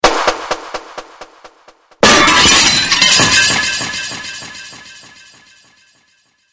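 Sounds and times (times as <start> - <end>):
glass breaking: 2.0 - 5.8.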